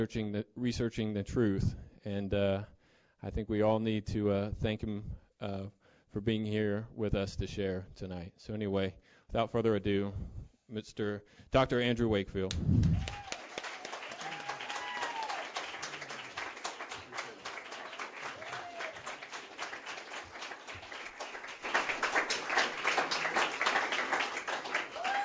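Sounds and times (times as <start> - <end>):
speech: 0.0 - 13.3
audience applause: 12.8 - 25.2.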